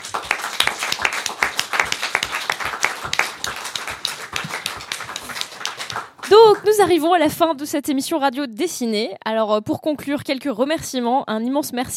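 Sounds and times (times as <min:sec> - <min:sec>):
small audience ovation at a live illustrated radio show at Nancy botanical garden: 0:00.0 - 0:06.9
speech: 0:06.6 - 0:11.9.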